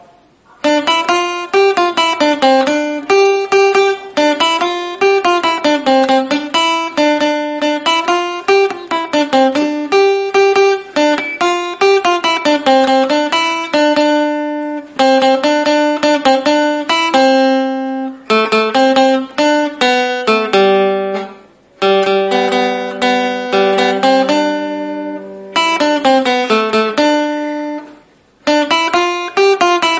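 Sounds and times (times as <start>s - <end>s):
instrumental music: 0.0s - 29.9s.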